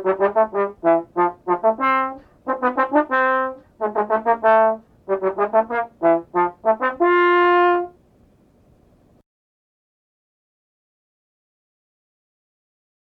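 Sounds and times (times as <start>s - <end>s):
trombone playing a polka: 0.0s - 8.0s.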